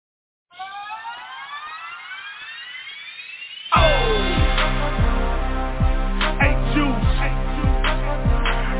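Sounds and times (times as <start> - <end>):
heroic anthem-like music with horns: 3.8 - 8.7.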